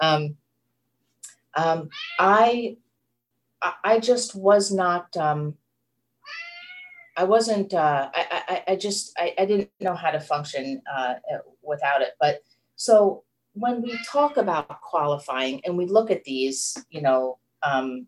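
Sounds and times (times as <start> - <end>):
speech: 0.1 - 0.4, 1.6 - 2.8, 3.6 - 5.6, 7.2 - 18.0
male house cat meowing: 1.9 - 2.3, 6.2 - 7.2.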